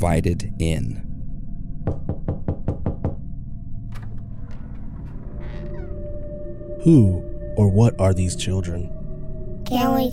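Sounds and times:
speech: 0:00.0 - 0:01.1, 0:06.8 - 0:09.0, 0:09.7 - 0:10.1
low rumbling drone: 0:00.0 - 0:09.7
knocking on a door: 0:01.8 - 0:03.2.

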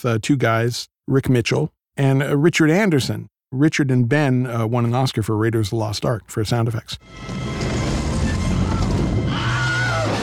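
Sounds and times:
speech: 0:00.0 - 0:07.8
Wilhelm scream movie sound effect: 0:08.6 - 0:10.2.

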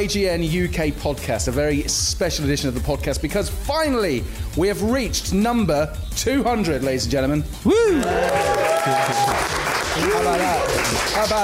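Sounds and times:
speech: 0:00.0 - 0:11.4
audience applause: 0:07.9 - 0:11.4.

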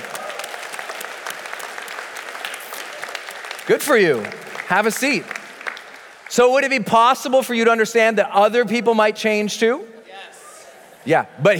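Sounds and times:
audience applause: 0:00.0 - 0:06.7
speech: 0:03.7 - 0:05.4, 0:06.3 - 0:09.9, 0:11.0 - 0:11.5.

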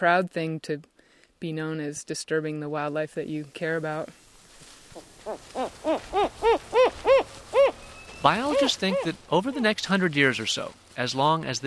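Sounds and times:
speech: 0:00.0 - 0:04.2, 0:05.0 - 0:06.4, 0:08.2 - 0:11.6
owl hooting: 0:05.0 - 0:09.6.

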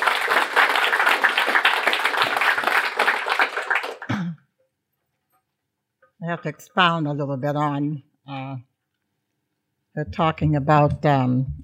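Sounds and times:
crowd applauding: 0:00.0 - 0:04.2
speech: 0:06.3 - 0:08.7, 0:10.0 - 0:11.6.

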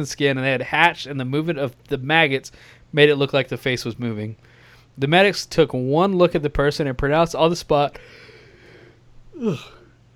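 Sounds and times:
speech: 0:00.0 - 0:08.2, 0:09.4 - 0:09.8
man yawning: 0:09.3 - 0:10.0.

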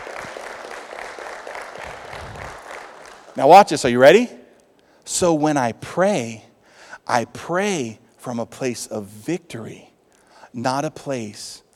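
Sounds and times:
audience applause: 0:00.0 - 0:03.4
speech: 0:03.4 - 0:04.4, 0:05.1 - 0:06.5, 0:07.1 - 0:09.9, 0:10.5 - 0:11.6.

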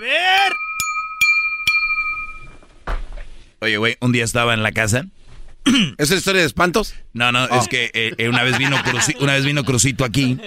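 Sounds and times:
glass bottle being struck, clinking: 0:00.3 - 0:02.6
speech: 0:03.6 - 0:10.4
laughter: 0:07.5 - 0:10.4.

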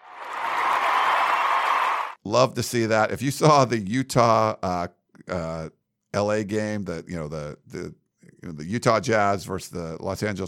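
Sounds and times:
applause: 0:00.0 - 0:02.2
speech: 0:02.3 - 0:10.4.

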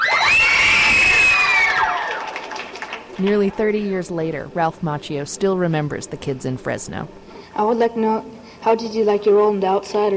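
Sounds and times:
children in Fresno cheering: 0:00.0 - 0:03.0
speech: 0:03.2 - 0:10.1.

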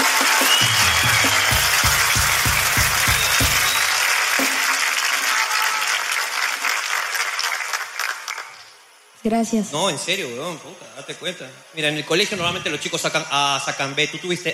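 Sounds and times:
audience applause: 0:00.0 - 0:08.8
speech: 0:09.3 - 0:14.5.

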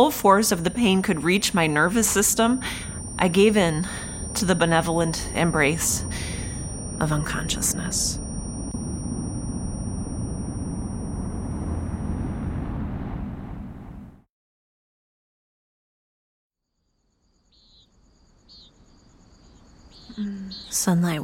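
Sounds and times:
speech: 0:00.0 - 0:06.4, 0:07.0 - 0:08.2, 0:20.7 - 0:21.2
crickets chirping in early morning: 0:00.0 - 0:12.6, 0:16.9 - 0:21.2
loud rumbling wash: 0:08.8 - 0:14.2.

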